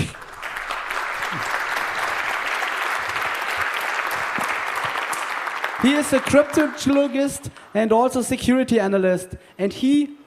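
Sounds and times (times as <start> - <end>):
audience applauding a speaker before a security talk: 0.0 - 7.3
speech: 5.8 - 10.2.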